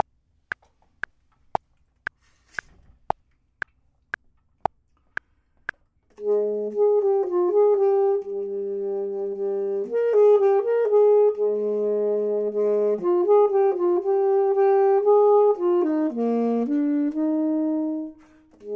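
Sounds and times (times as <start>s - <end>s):
clarinet: 6.1s - 18.7s
saxophone: 6.1s - 18.7s.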